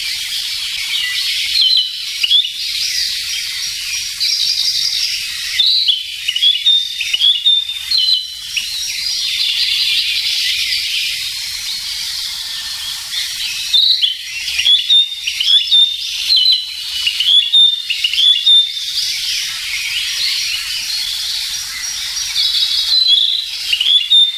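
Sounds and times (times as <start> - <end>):
Narcissus flycatcher song of whistles and chirps: 0.0 - 24.3
continuous insect drone: 0.0 - 24.3.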